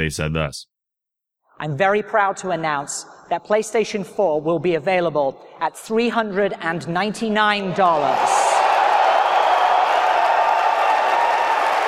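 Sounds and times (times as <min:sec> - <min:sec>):
speech: 0:00.0 - 0:00.7, 0:01.6 - 0:08.6
crowd applause: 0:07.9 - 0:11.8.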